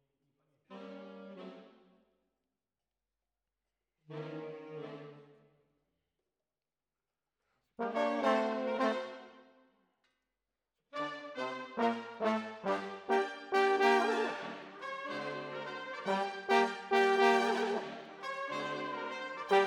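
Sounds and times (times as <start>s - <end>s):
trombones: 7.8s - 9.4s, 11.0s - 19.6s.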